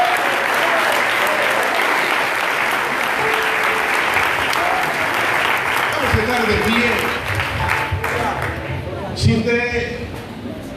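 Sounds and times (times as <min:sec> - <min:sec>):
audience applause: 0:00.0 - 0:08.8
faint voices murmuring: 0:03.2 - 0:10.7.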